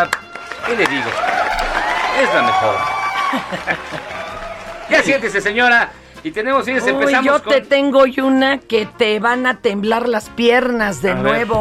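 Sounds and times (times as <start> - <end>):
speech: 0.0 - 1.4, 2.2 - 11.5
crowd applauding: 0.0 - 6.0
people cheering and chuckling: 0.6 - 5.2.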